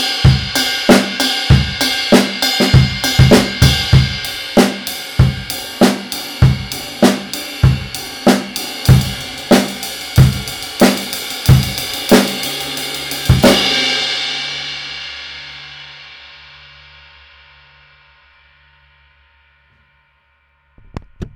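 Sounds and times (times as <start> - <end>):
19-inch jazz ride cymbal: 0.0 - 16.9.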